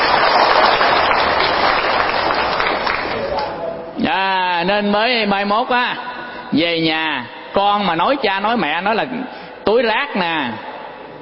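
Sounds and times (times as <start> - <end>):
audience applause during a Buddhist monk's lecture: 0.0 - 3.4
speech: 4.7 - 10.7.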